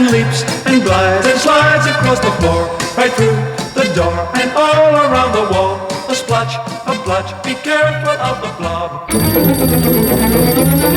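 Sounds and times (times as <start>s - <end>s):
speech: 0.1s - 5.6s, 6.2s - 10.8s
telephone bell ringing: 9.1s - 10.9s.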